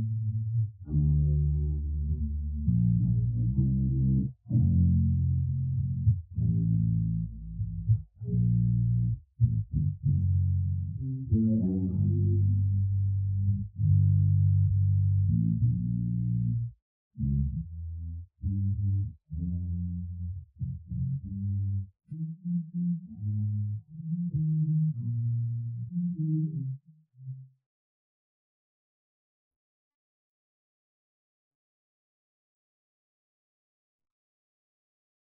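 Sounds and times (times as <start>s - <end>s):
bass: 0.0s - 27.6s.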